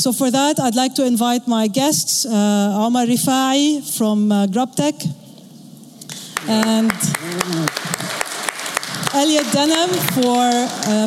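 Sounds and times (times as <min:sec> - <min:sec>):
speech: 0:00.0 - 0:05.2, 0:06.5 - 0:07.7, 0:09.2 - 0:11.0
audience applause: 0:06.1 - 0:11.0.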